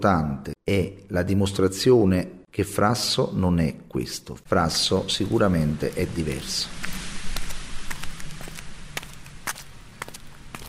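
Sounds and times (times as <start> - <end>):
speech: 0.0 - 7.0
wind in Frasso: 4.4 - 10.6
footsteps: 4.7 - 10.6.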